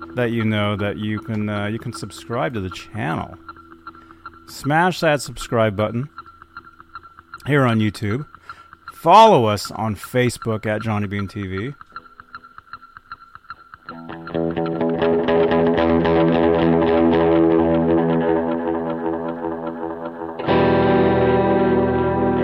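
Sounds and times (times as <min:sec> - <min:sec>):
speech: 0:00.2 - 0:03.5, 0:04.5 - 0:06.2, 0:07.4 - 0:08.4, 0:09.0 - 0:11.8
electric guitar played through an effects pedal board: 0:13.9 - 0:22.4.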